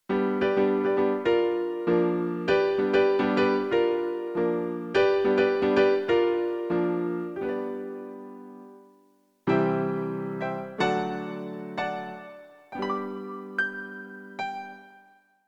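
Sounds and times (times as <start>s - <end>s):
piano: 0.0s - 15.4s.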